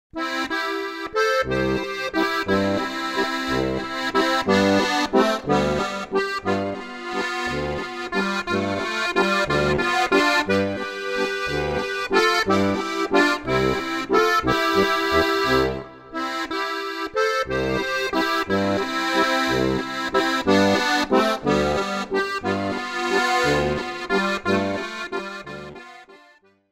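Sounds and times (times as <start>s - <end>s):
waltz music: 0.2s - 26.2s.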